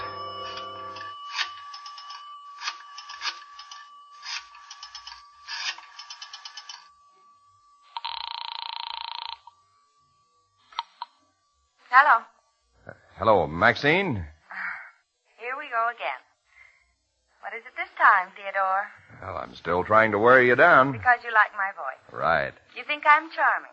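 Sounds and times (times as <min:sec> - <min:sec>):
telephone ringing on the line: 0:00.0 - 0:09.6
faint continuous line tone: 0:00.0 - 0:23.7
speech: 0:12.0 - 0:12.3, 0:13.2 - 0:14.3, 0:18.1 - 0:23.7.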